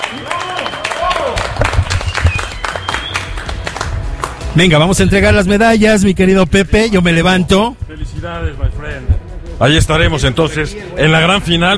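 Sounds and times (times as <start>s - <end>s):
crowd applauding: 0.0s - 4.6s
speech: 4.6s - 11.7s.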